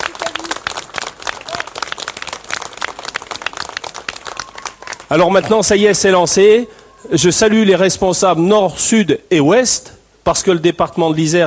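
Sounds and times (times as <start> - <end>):
audience applause: 0.0 - 6.9
speech: 5.1 - 11.4.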